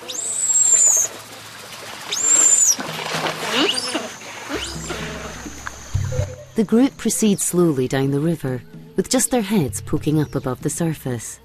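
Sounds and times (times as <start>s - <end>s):
giant otter vocalizations: 0.0s - 1.1s, 2.1s - 2.8s, 3.5s - 6.6s
speech: 6.6s - 11.4s.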